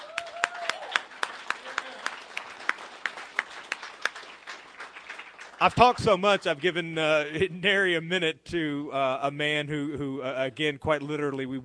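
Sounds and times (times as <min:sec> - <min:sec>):
audience round of applause: 0:00.0 - 0:06.9
speech: 0:05.6 - 0:11.6.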